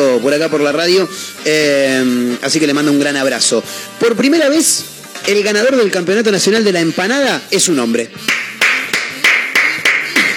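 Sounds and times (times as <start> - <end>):
speech: 0.0 - 8.6
person clapping hands: 8.2 - 10.3.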